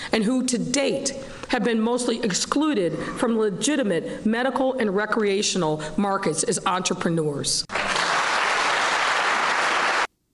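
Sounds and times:
speech: 0.1s - 7.8s
crowd applauding: 7.7s - 10.1s.

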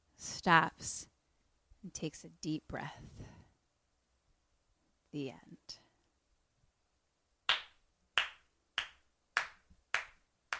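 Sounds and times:
speech: 0.4s - 1.1s, 1.8s - 3.4s, 5.2s - 5.8s
slow hand claps: 7.5s - 10.5s.

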